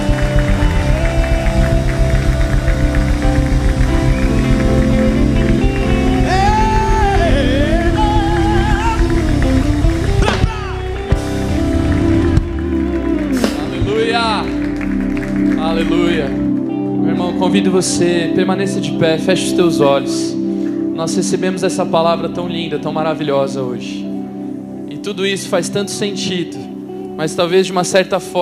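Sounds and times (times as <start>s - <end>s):
audience applauding loudly: 0.0s - 17.0s
speech: 17.8s - 20.4s, 21.0s - 24.1s, 25.0s - 28.4s.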